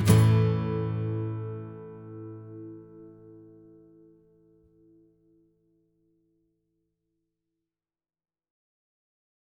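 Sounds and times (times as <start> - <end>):
instrumental music: 0.0 - 5.0.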